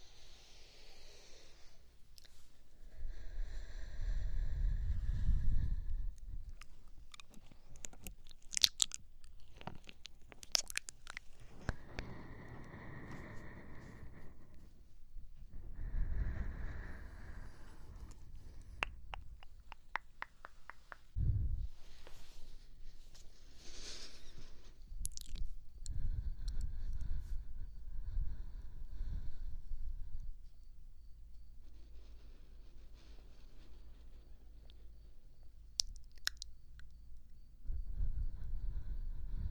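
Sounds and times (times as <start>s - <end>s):
slow breathing: 0.0s - 8.7s, 9.5s - 30.2s, 37.6s - 39.5s
ear licking: 6.2s - 14.7s, 16.4s - 21.3s, 25.0s - 26.5s, 35.8s - 36.9s.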